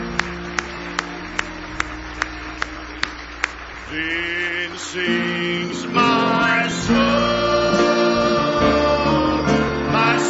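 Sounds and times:
crowd clapping in unison: 0.0 - 7.3
low musical drone: 0.0 - 10.2
speech: 3.9 - 6.1.

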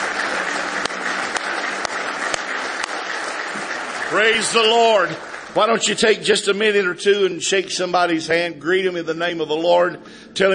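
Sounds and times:
audience applauding: 0.0 - 6.9
speech: 4.1 - 10.5.

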